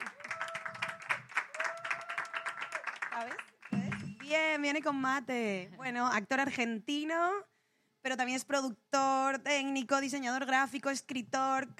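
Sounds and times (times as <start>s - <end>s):
faint audience applause on a Spanish-language talk show: 0.0s - 4.2s
speech: 3.2s - 3.5s, 4.3s - 11.7s.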